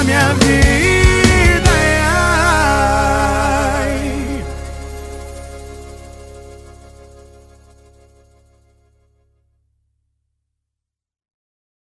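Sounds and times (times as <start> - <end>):
electro funk and sertanejo music: 0.0 - 8.8.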